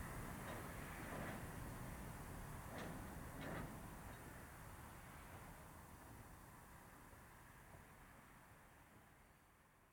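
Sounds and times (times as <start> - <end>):
crowded train: 0.0 - 6.1.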